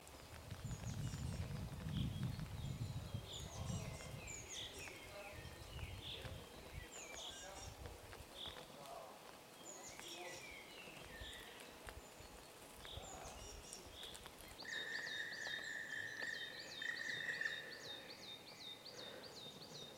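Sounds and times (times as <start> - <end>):
birds: 0.0 - 19.9.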